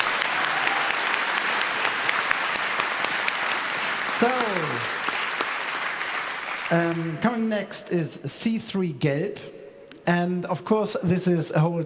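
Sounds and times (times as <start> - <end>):
audience applause: 0.0 - 7.2
speech: 6.7 - 11.8.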